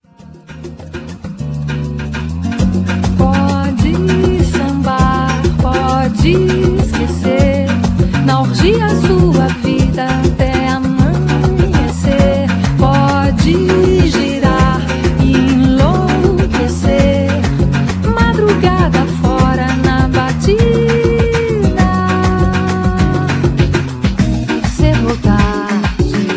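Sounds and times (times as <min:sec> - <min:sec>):
Brazilian music: 0:00.0 - 0:26.3.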